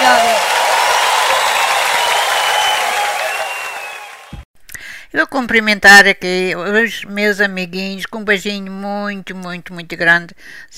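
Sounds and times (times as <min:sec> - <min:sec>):
audience applause: 0:00.0 - 0:04.4
speech: 0:05.2 - 0:10.7.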